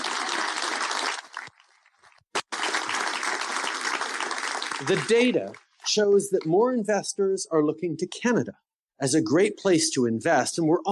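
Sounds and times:
audience applause: 0.0 - 5.7
speech: 4.8 - 10.8.

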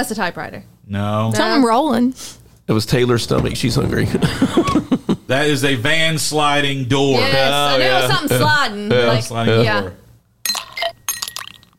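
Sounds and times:
speech: 0.0 - 10.0
laughter: 4.0 - 6.0, 7.2 - 8.6
ice clinking in a cup: 10.5 - 11.7.

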